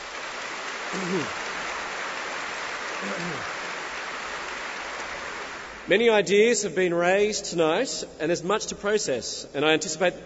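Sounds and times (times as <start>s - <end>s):
audience applause: 0.0s - 5.9s
speech: 0.9s - 1.4s, 3.0s - 3.6s, 5.9s - 10.2s
voices calling out: 3.0s - 3.7s.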